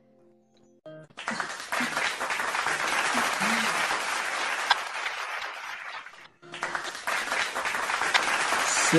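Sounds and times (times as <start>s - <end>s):
applause from a group: 1.1s - 8.9s
faint voices and laughter: 3.0s - 4.1s.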